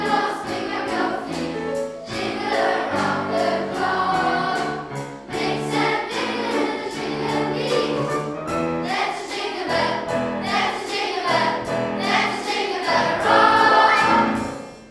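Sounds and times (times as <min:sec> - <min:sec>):
youth chamber choir singing a Christmas song at a Christmas concert: 0:00.0 - 0:14.9.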